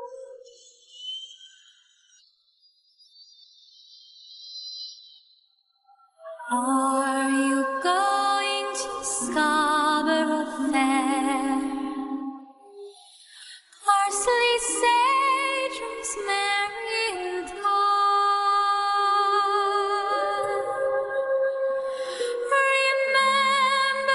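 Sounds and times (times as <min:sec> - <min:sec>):
vocals: 0:06.2 - 0:24.1.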